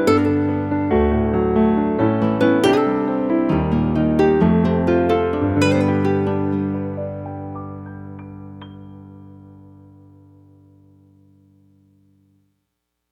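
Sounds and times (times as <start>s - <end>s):
Roland Fantom XR synthesizer: 0.0s - 10.3s.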